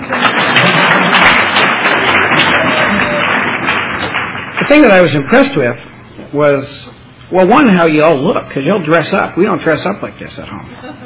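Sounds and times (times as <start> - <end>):
audience clapping: 0.0 - 5.8
speech: 4.7 - 11.0.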